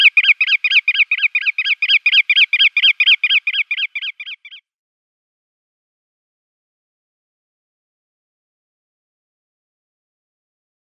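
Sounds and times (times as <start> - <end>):
bar-tailed godwit display call: 0.0 - 4.6.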